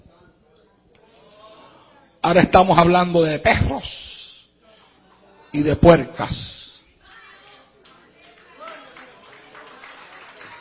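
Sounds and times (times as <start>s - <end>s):
speech: 2.3s - 4.0s, 5.5s - 6.6s
audience applauding: 7.8s - 10.5s.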